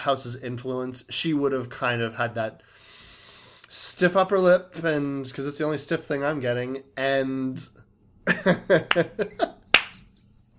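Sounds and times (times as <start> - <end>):
speech: 0.0 - 2.9, 3.7 - 9.5
slow clap: 8.8 - 10.5.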